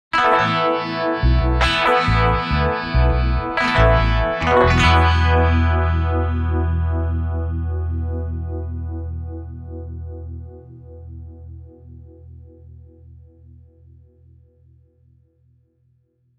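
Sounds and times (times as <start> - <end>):
Rickenbacker guitar solo: 0.2 - 9.6.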